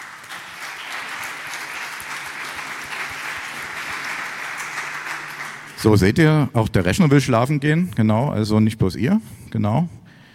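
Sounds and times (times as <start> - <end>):
audience applause: 0.0 - 6.1
speech: 5.8 - 10.0.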